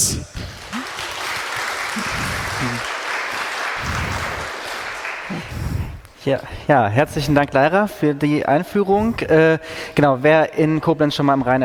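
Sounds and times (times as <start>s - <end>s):
audience applause: 0.4s - 5.6s
speech: 6.3s - 11.6s.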